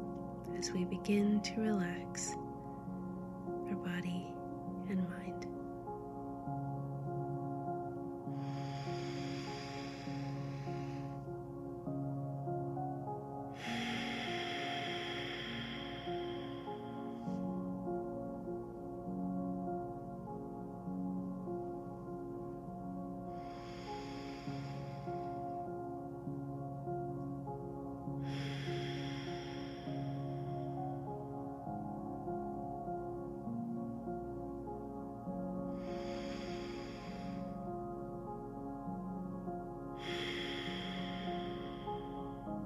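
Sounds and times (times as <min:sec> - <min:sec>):
soft sustained music: 0:00.0 - 0:42.6
speech: 0:00.6 - 0:02.4, 0:03.8 - 0:05.6
slow deep breaths during a guided relaxation: 0:05.4 - 0:33.5, 0:34.3 - 0:42.6.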